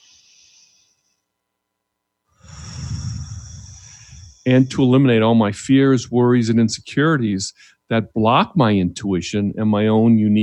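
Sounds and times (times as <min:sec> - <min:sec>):
deep breath during a guided relaxation: 0:00.0 - 0:01.2, 0:02.4 - 0:04.9, 0:07.6 - 0:07.9
speech: 0:04.5 - 0:10.4.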